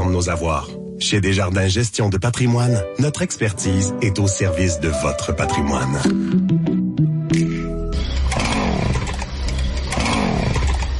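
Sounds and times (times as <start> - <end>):
speech: 0.1 - 7.5
chainsaw running: 8.2 - 10.9.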